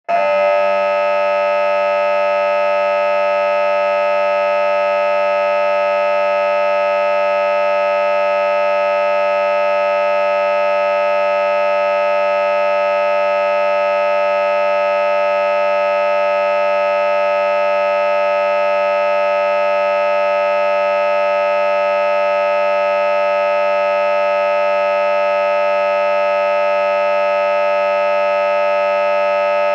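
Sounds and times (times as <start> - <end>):
theatre or hall opening buzzer with reverb: 0.0 - 29.7.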